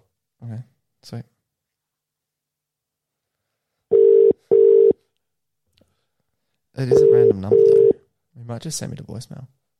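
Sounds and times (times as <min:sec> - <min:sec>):
speech: 0:00.4 - 0:01.3, 0:06.8 - 0:09.6
telephone ringing tone as a call is placed: 0:03.9 - 0:05.0, 0:06.9 - 0:08.0.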